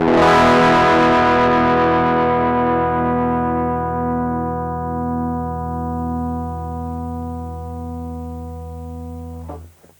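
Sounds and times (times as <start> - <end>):
overdriven amplifier: 0.0 - 9.9.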